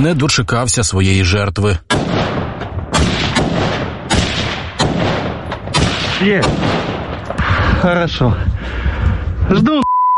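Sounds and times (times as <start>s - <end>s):
speech: 0.0s - 2.2s, 6.2s - 6.9s, 7.8s - 8.5s, 9.5s - 9.9s
gunfire shooting at an enemy drone: 1.9s - 7.4s.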